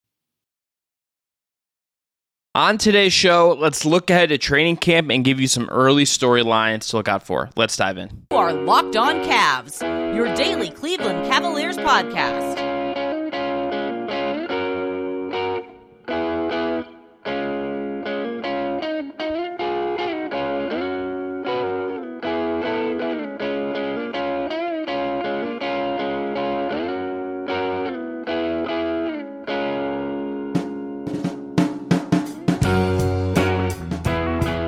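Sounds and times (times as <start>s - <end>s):
speech: 2.6s - 12.7s
heavily effected distorted guitar-like tones: 8.3s - 31.3s
steady beat: 31.1s - 34.6s.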